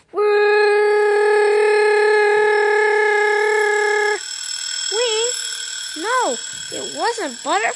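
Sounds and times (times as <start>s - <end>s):
alarm clock ringing: 1.2s - 7.7s
speech: 7.0s - 7.7s.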